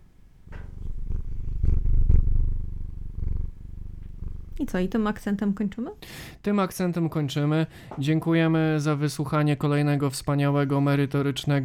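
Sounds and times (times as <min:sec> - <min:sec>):
cat purring: 0:00.0 - 0:06.2
speech: 0:04.6 - 0:11.6.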